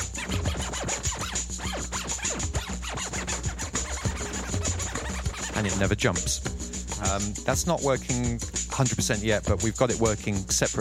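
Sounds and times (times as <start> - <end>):
digital vinyl scratching of a sample: 0.0 - 6.0
speech: 5.6 - 10.7.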